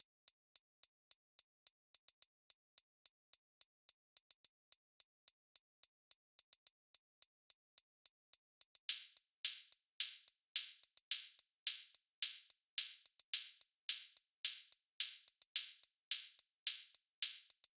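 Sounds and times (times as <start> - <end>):
hi-hat loop at 108 bpm: 8.9 - 17.6.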